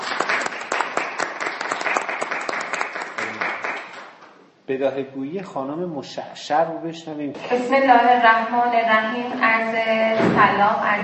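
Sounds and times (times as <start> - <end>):
audience applause: 0.0 - 4.2
speech: 4.7 - 11.0.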